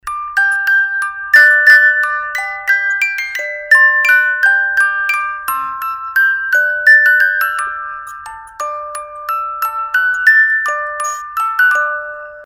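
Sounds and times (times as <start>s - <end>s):
music box minuet: 0.0s - 12.4s.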